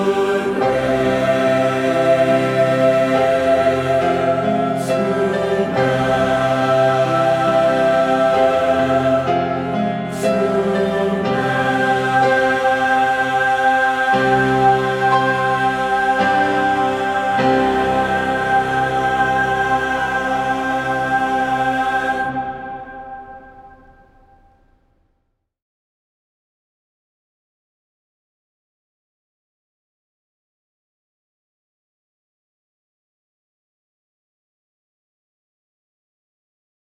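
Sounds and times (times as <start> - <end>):
person singing in English: 0.0 - 23.8.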